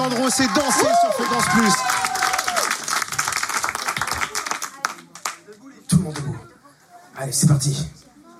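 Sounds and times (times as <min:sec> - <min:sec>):
speech: 0:00.0 - 0:02.1, 0:07.2 - 0:08.0
cheering voices: 0:00.0 - 0:04.5
audience applause: 0:00.0 - 0:05.7.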